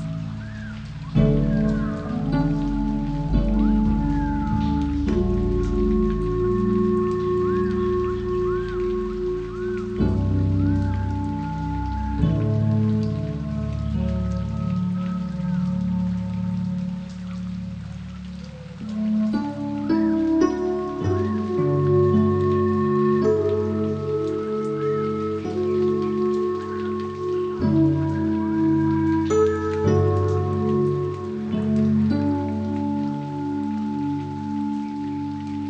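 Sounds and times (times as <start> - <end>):
tropical rainforest zen spa music: 0.0 - 35.6.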